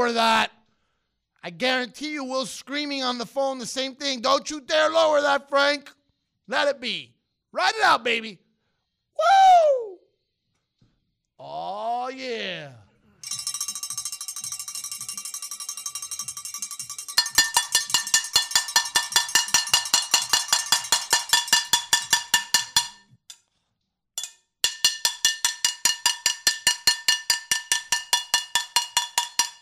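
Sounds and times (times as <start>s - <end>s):
speech: 0.0s - 0.6s, 1.4s - 8.4s, 11.4s - 12.8s
pots and pans being banged: 16.4s - 23.0s, 24.2s - 29.6s.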